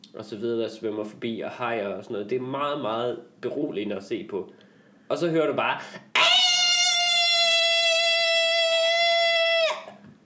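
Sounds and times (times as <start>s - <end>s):
speech: 0.1s - 6.1s
voice imitating screaming children: 6.2s - 10.0s.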